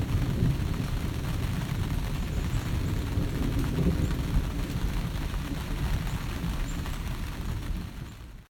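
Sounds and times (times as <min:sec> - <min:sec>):
thunder near the base of Roaring Mountain: 0:00.0 - 0:06.5
raindrops near the base of Roaring Mountain: 0:00.0 - 0:08.5.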